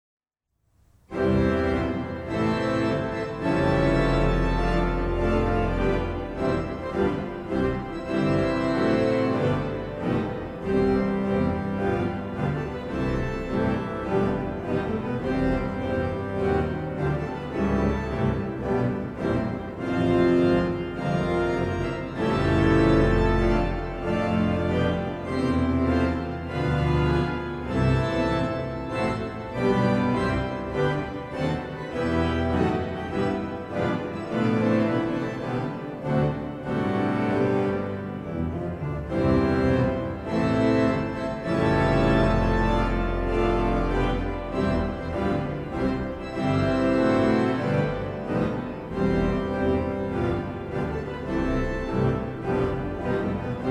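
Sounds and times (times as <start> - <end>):
march music: 1.0 - 53.6.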